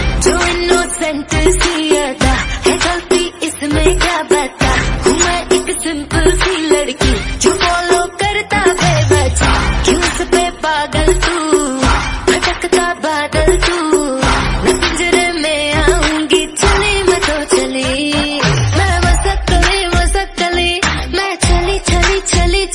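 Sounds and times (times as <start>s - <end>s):
woman singing ringtone: 0.2s - 22.7s.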